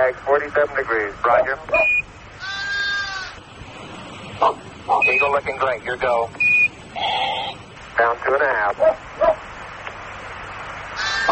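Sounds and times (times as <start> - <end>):
speech: 0.0 - 2.1, 4.4 - 7.4, 8.0 - 9.4
faint hiss: 0.0 - 11.2
sheep bleating: 2.4 - 3.4, 11.0 - 11.2.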